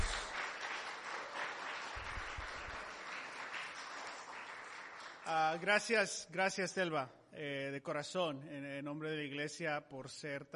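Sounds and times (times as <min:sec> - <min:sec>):
audience applause: 0:00.0 - 0:05.7
speech: 0:05.3 - 0:10.5.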